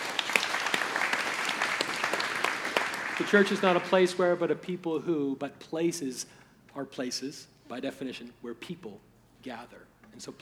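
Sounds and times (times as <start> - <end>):
audience applause: 0.0 - 4.4
speech: 3.2 - 10.3.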